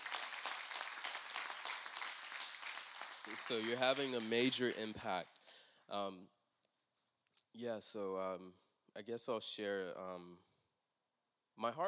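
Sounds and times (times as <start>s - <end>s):
audience applause: 0.0s - 5.0s
speech: 3.3s - 5.3s, 5.9s - 6.4s, 7.6s - 10.5s, 11.6s - 11.8s.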